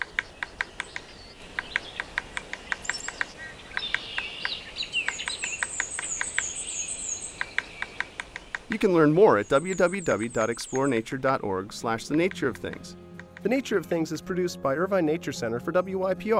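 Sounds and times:
yellow-bellied sapsucker thin high chirping calls: 0.0 - 13.6
yellow-bellied sapsucker drumming: 0.0 - 15.1
speech: 8.7 - 16.3.

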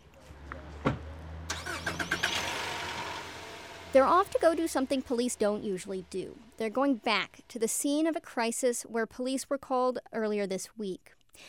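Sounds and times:
police car engine starting: 0.0 - 7.6
speech: 3.9 - 11.4.

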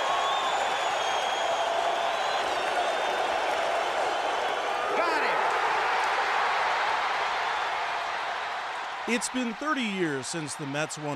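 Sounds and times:
whistles from stadium crowd: 0.0 - 4.9
huge stadium crowd cheering: 0.0 - 11.1
speech: 9.1 - 11.1.

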